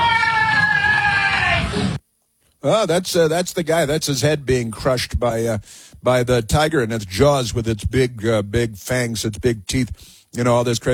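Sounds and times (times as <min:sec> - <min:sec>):
woman screaming: 0:00.0 - 0:02.0
speech: 0:02.6 - 0:10.9.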